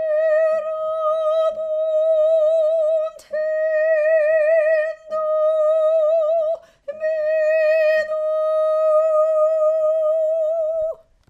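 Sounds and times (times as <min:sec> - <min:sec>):
tenor singing a psalm: 0:00.0 - 0:11.1.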